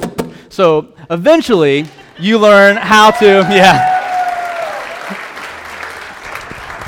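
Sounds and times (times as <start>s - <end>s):
speech: 0.6s - 3.9s
audience applause: 3.2s - 6.8s.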